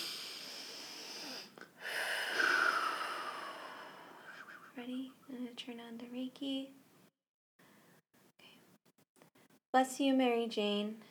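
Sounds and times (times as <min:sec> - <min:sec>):
deep breath in and out: 0:00.0 - 0:04.7
speech: 0:04.8 - 0:06.8, 0:09.8 - 0:11.0.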